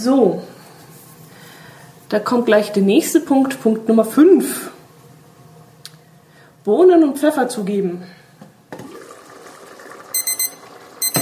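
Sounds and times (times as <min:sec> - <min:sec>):
speech: 0:00.0 - 0:00.5, 0:02.1 - 0:04.8, 0:06.6 - 0:08.2
kitchen timer beeping while beans are cooking: 0:10.2 - 0:11.2.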